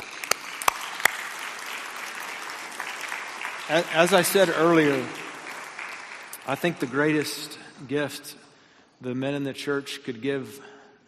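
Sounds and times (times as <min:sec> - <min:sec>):
audience applauding: 0:00.0 - 0:07.3
speech: 0:03.7 - 0:05.2, 0:06.5 - 0:08.4, 0:09.0 - 0:10.7.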